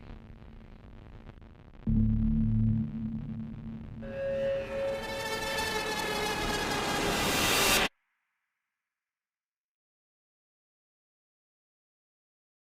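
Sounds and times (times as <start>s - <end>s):
trailer music: 1.9s - 7.9s.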